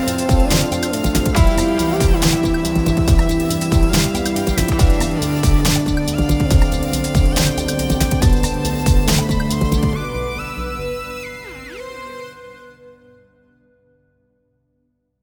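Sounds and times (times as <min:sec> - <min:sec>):
8-bit music: 0:00.0 - 0:10.0.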